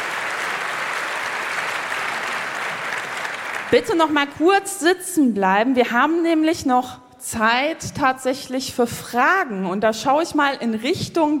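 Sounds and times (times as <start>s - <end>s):
audience applause: 0.0s - 3.9s
speech: 3.7s - 11.3s.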